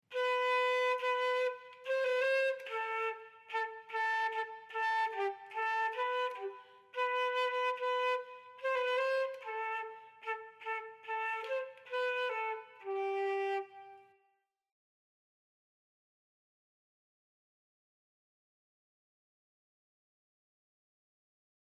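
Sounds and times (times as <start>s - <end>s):
instrumental music: 0.1s - 14.2s.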